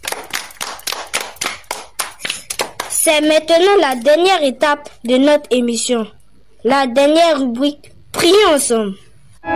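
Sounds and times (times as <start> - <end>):
audience clapping at the close of a religious programme segment: 0.0 - 3.1
speech: 3.0 - 9.5.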